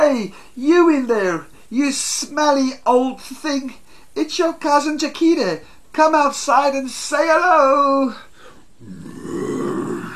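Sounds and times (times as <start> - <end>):
speech: 0.0 - 9.5
terrifying growl and roar: 8.8 - 10.1.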